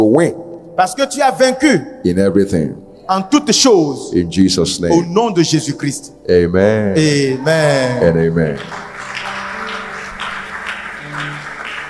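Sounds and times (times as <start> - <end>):
speech: 0.0 - 8.8
church congregation applauding: 7.2 - 11.8.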